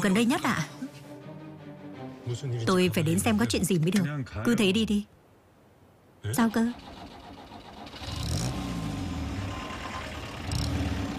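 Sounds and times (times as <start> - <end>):
speech: 0.0 - 0.8, 2.3 - 5.2, 6.2 - 7.0
car engine rumbling as the car drives on: 6.7 - 11.1.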